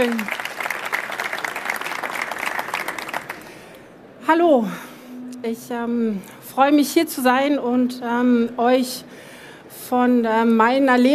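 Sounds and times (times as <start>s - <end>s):
audience applause: 0.0s - 3.6s
speech: 4.3s - 9.3s, 9.9s - 11.1s.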